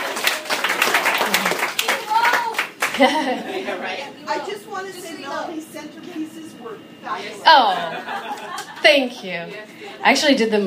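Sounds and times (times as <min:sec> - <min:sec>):
audience clapping and cheering for a bride-to-be: 0:00.0 - 0:03.3
laughter: 0:00.9 - 0:01.8, 0:02.8 - 0:04.2, 0:07.2 - 0:10.3
speech: 0:03.0 - 0:10.6.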